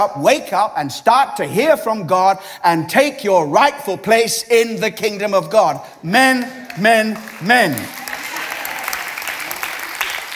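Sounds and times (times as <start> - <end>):
speech: 0.0 - 8.0
audience applause: 6.4 - 10.3.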